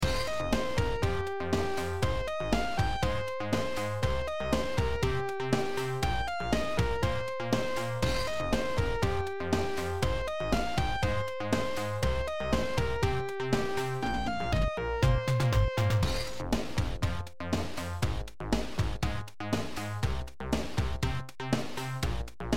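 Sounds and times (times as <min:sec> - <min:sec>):
bass lead sound over a beat: 0:00.0 - 0:22.5.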